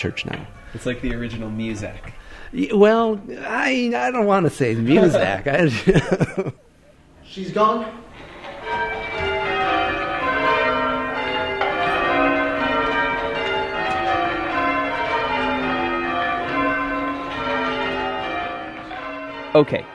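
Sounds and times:
church bells ringing: 0.0 - 3.1, 7.6 - 19.9
speech: 0.0 - 6.6, 7.3 - 8.1, 19.6 - 19.9
laughter: 4.7 - 7.0.

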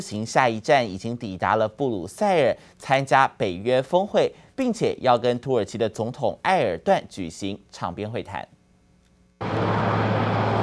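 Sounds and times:
speech: 0.0 - 8.6
presidential helicopter landing at Windsor Castle: 9.4 - 10.6.

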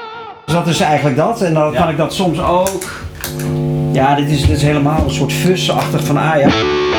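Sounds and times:
speech: 0.7 - 6.8
electric guitar through a crunchy distortion pedal playing lead notes: 2.3 - 6.7.

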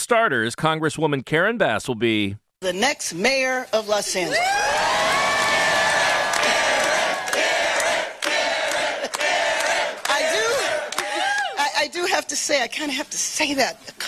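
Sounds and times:
speech: 0.1 - 5.1, 12.2 - 14.0
raucous crowd cheering: 4.3 - 11.6.

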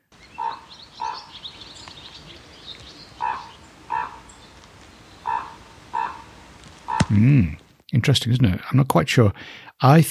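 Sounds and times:
raven croaking: 0.0 - 7.7
faint hiss: 0.0 - 10.0
speech: 7.1 - 10.0.

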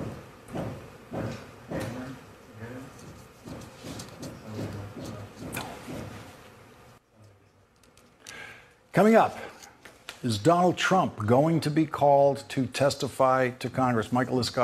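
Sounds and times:
tool hammering: 0.0 - 2.2, 3.0 - 6.3
speech: 9.0 - 9.4, 10.2 - 14.6.

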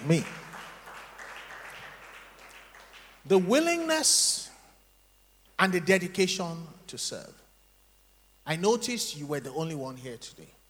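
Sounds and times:
speech: 0.0 - 0.4, 3.3 - 4.5, 5.6 - 7.4, 8.5 - 10.6
scattered clapping from a small handful of people: 0.0 - 3.3.

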